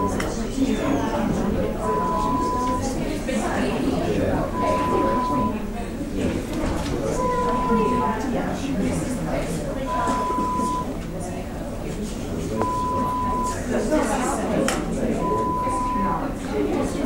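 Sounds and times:
hospital ambience: 0:00.0 - 0:17.0.

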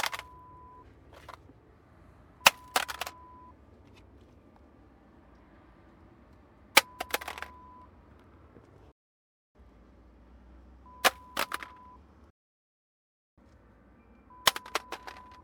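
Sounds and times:
satnav being dropped: 0:00.0 - 0:00.4, 0:01.1 - 0:01.5, 0:02.4 - 0:03.2, 0:06.8 - 0:07.6, 0:11.0 - 0:11.8, 0:14.4 - 0:15.4.

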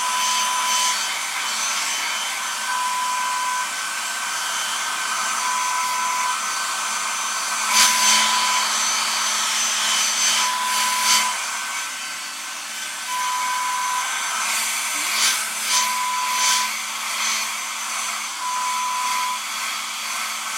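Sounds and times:
hair dryer: 0:00.0 - 0:20.5.

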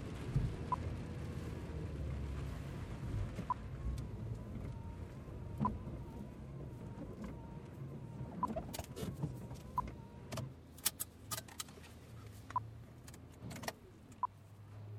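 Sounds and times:
rain: 0:00.0 - 0:08.6
Peugeot 106 driving recorded from the interior: 0:00.0 - 0:14.9.

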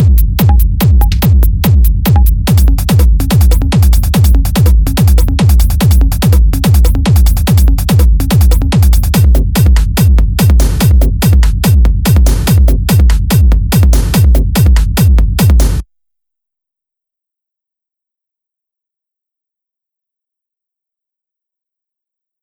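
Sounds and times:
hard trance loops: 0:00.0 - 0:15.8.

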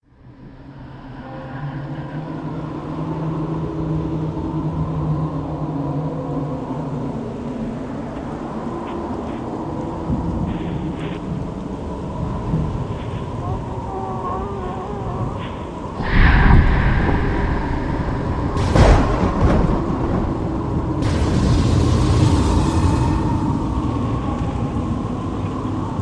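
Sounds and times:
haunted graveyard ambience: 0:00.1 - 0:26.0.

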